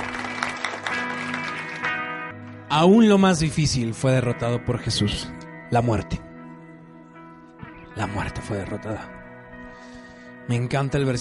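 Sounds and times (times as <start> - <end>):
loud applause: 0.0 - 2.2
speech: 2.7 - 6.3, 8.0 - 9.2, 10.5 - 11.1.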